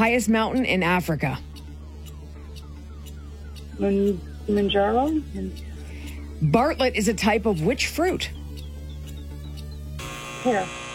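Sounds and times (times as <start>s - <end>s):
speech: 0.0s - 1.5s, 3.8s - 5.7s, 6.4s - 8.4s, 10.4s - 10.8s
quiz buzzer: 10.0s - 10.9s.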